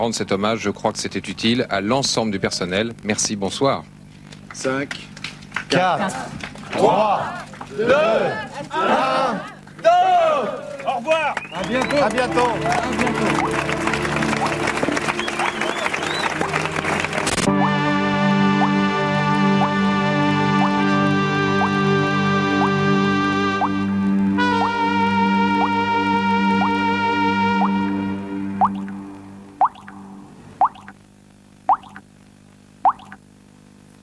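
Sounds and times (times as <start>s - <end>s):
speech: 0.0s - 4.0s, 4.6s - 5.1s, 5.7s - 13.6s
droning repetitive musical piece: 12.1s - 30.3s
water drops plinking: 28.6s - 28.9s, 29.6s - 30.0s, 30.6s - 31.0s, 31.7s - 32.0s, 32.9s - 33.2s.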